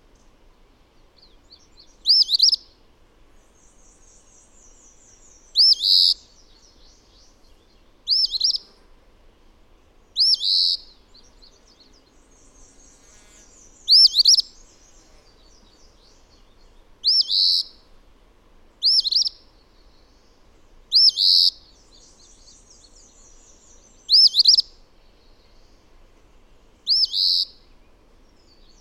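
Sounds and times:
bird song of high bright looping arched notes: 1.0s - 2.8s, 3.4s - 8.8s, 10.0s - 17.9s, 18.7s - 28.7s.

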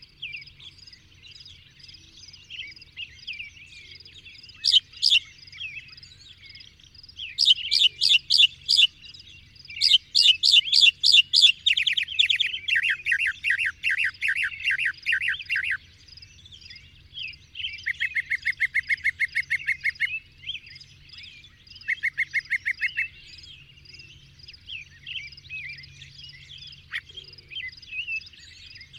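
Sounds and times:
bird chirping and twittering: 0.0s - 28.9s.

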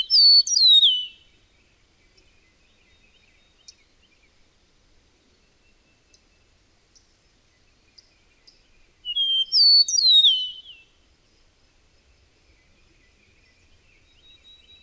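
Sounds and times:
bird whistled song: 0.0s - 1.2s, 9.1s - 10.8s.

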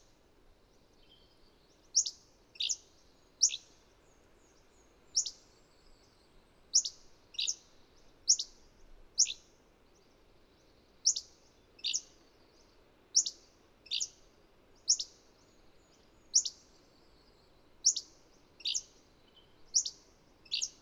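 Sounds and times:
bird chirping with sharp high downward-sweeping chirps: 1.0s - 8.6s, 9.2s - 9.5s, 10.6s - 20.8s.

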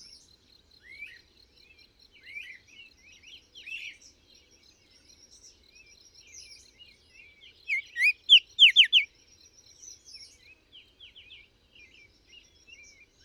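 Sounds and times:
bird song chirps and whistles: 7.6s - 9.1s.

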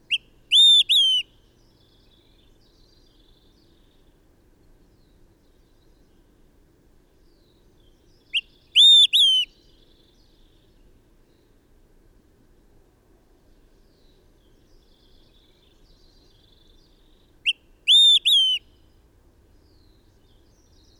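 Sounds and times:
bird singing: 0.0s - 4.2s, 7.2s - 11.6s, 13.5s - 20.9s.

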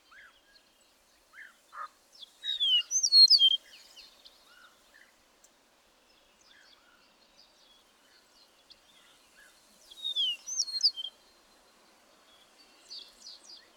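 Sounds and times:
bird song with high twittering and sliding notes: 2.4s - 4.1s, 10.0s - 11.2s.

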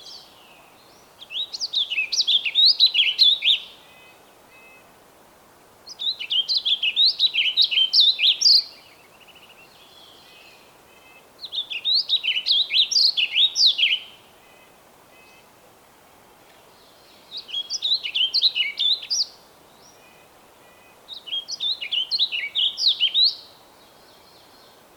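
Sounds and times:
bird song: 0.0s - 4.9s, 5.8s - 15.5s, 16.5s - 24.9s.

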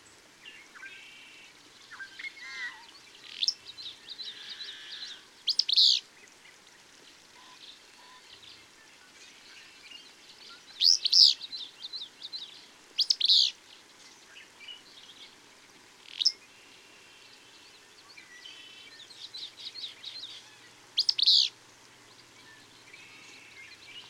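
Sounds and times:
bird song of high sharp chirps: 0.0s - 6.0s, 7.4s - 15.4s, 16.0s - 24.0s.

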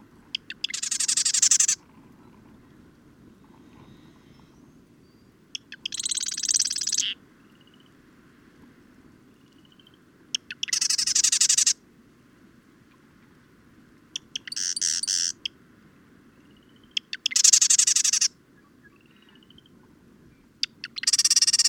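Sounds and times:
bird song with high sharp chirped notes and dense rapid trill: 0.4s - 1.8s, 5.1s - 7.9s, 9.6s - 11.8s, 14.2s - 15.5s, 16.4s - 19.7s, 20.6s - 21.6s.

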